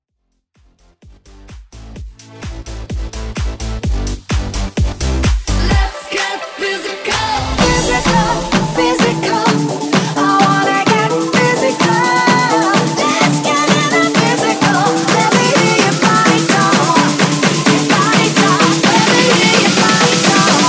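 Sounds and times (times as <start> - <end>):
house music vocals: 1.9 - 20.6.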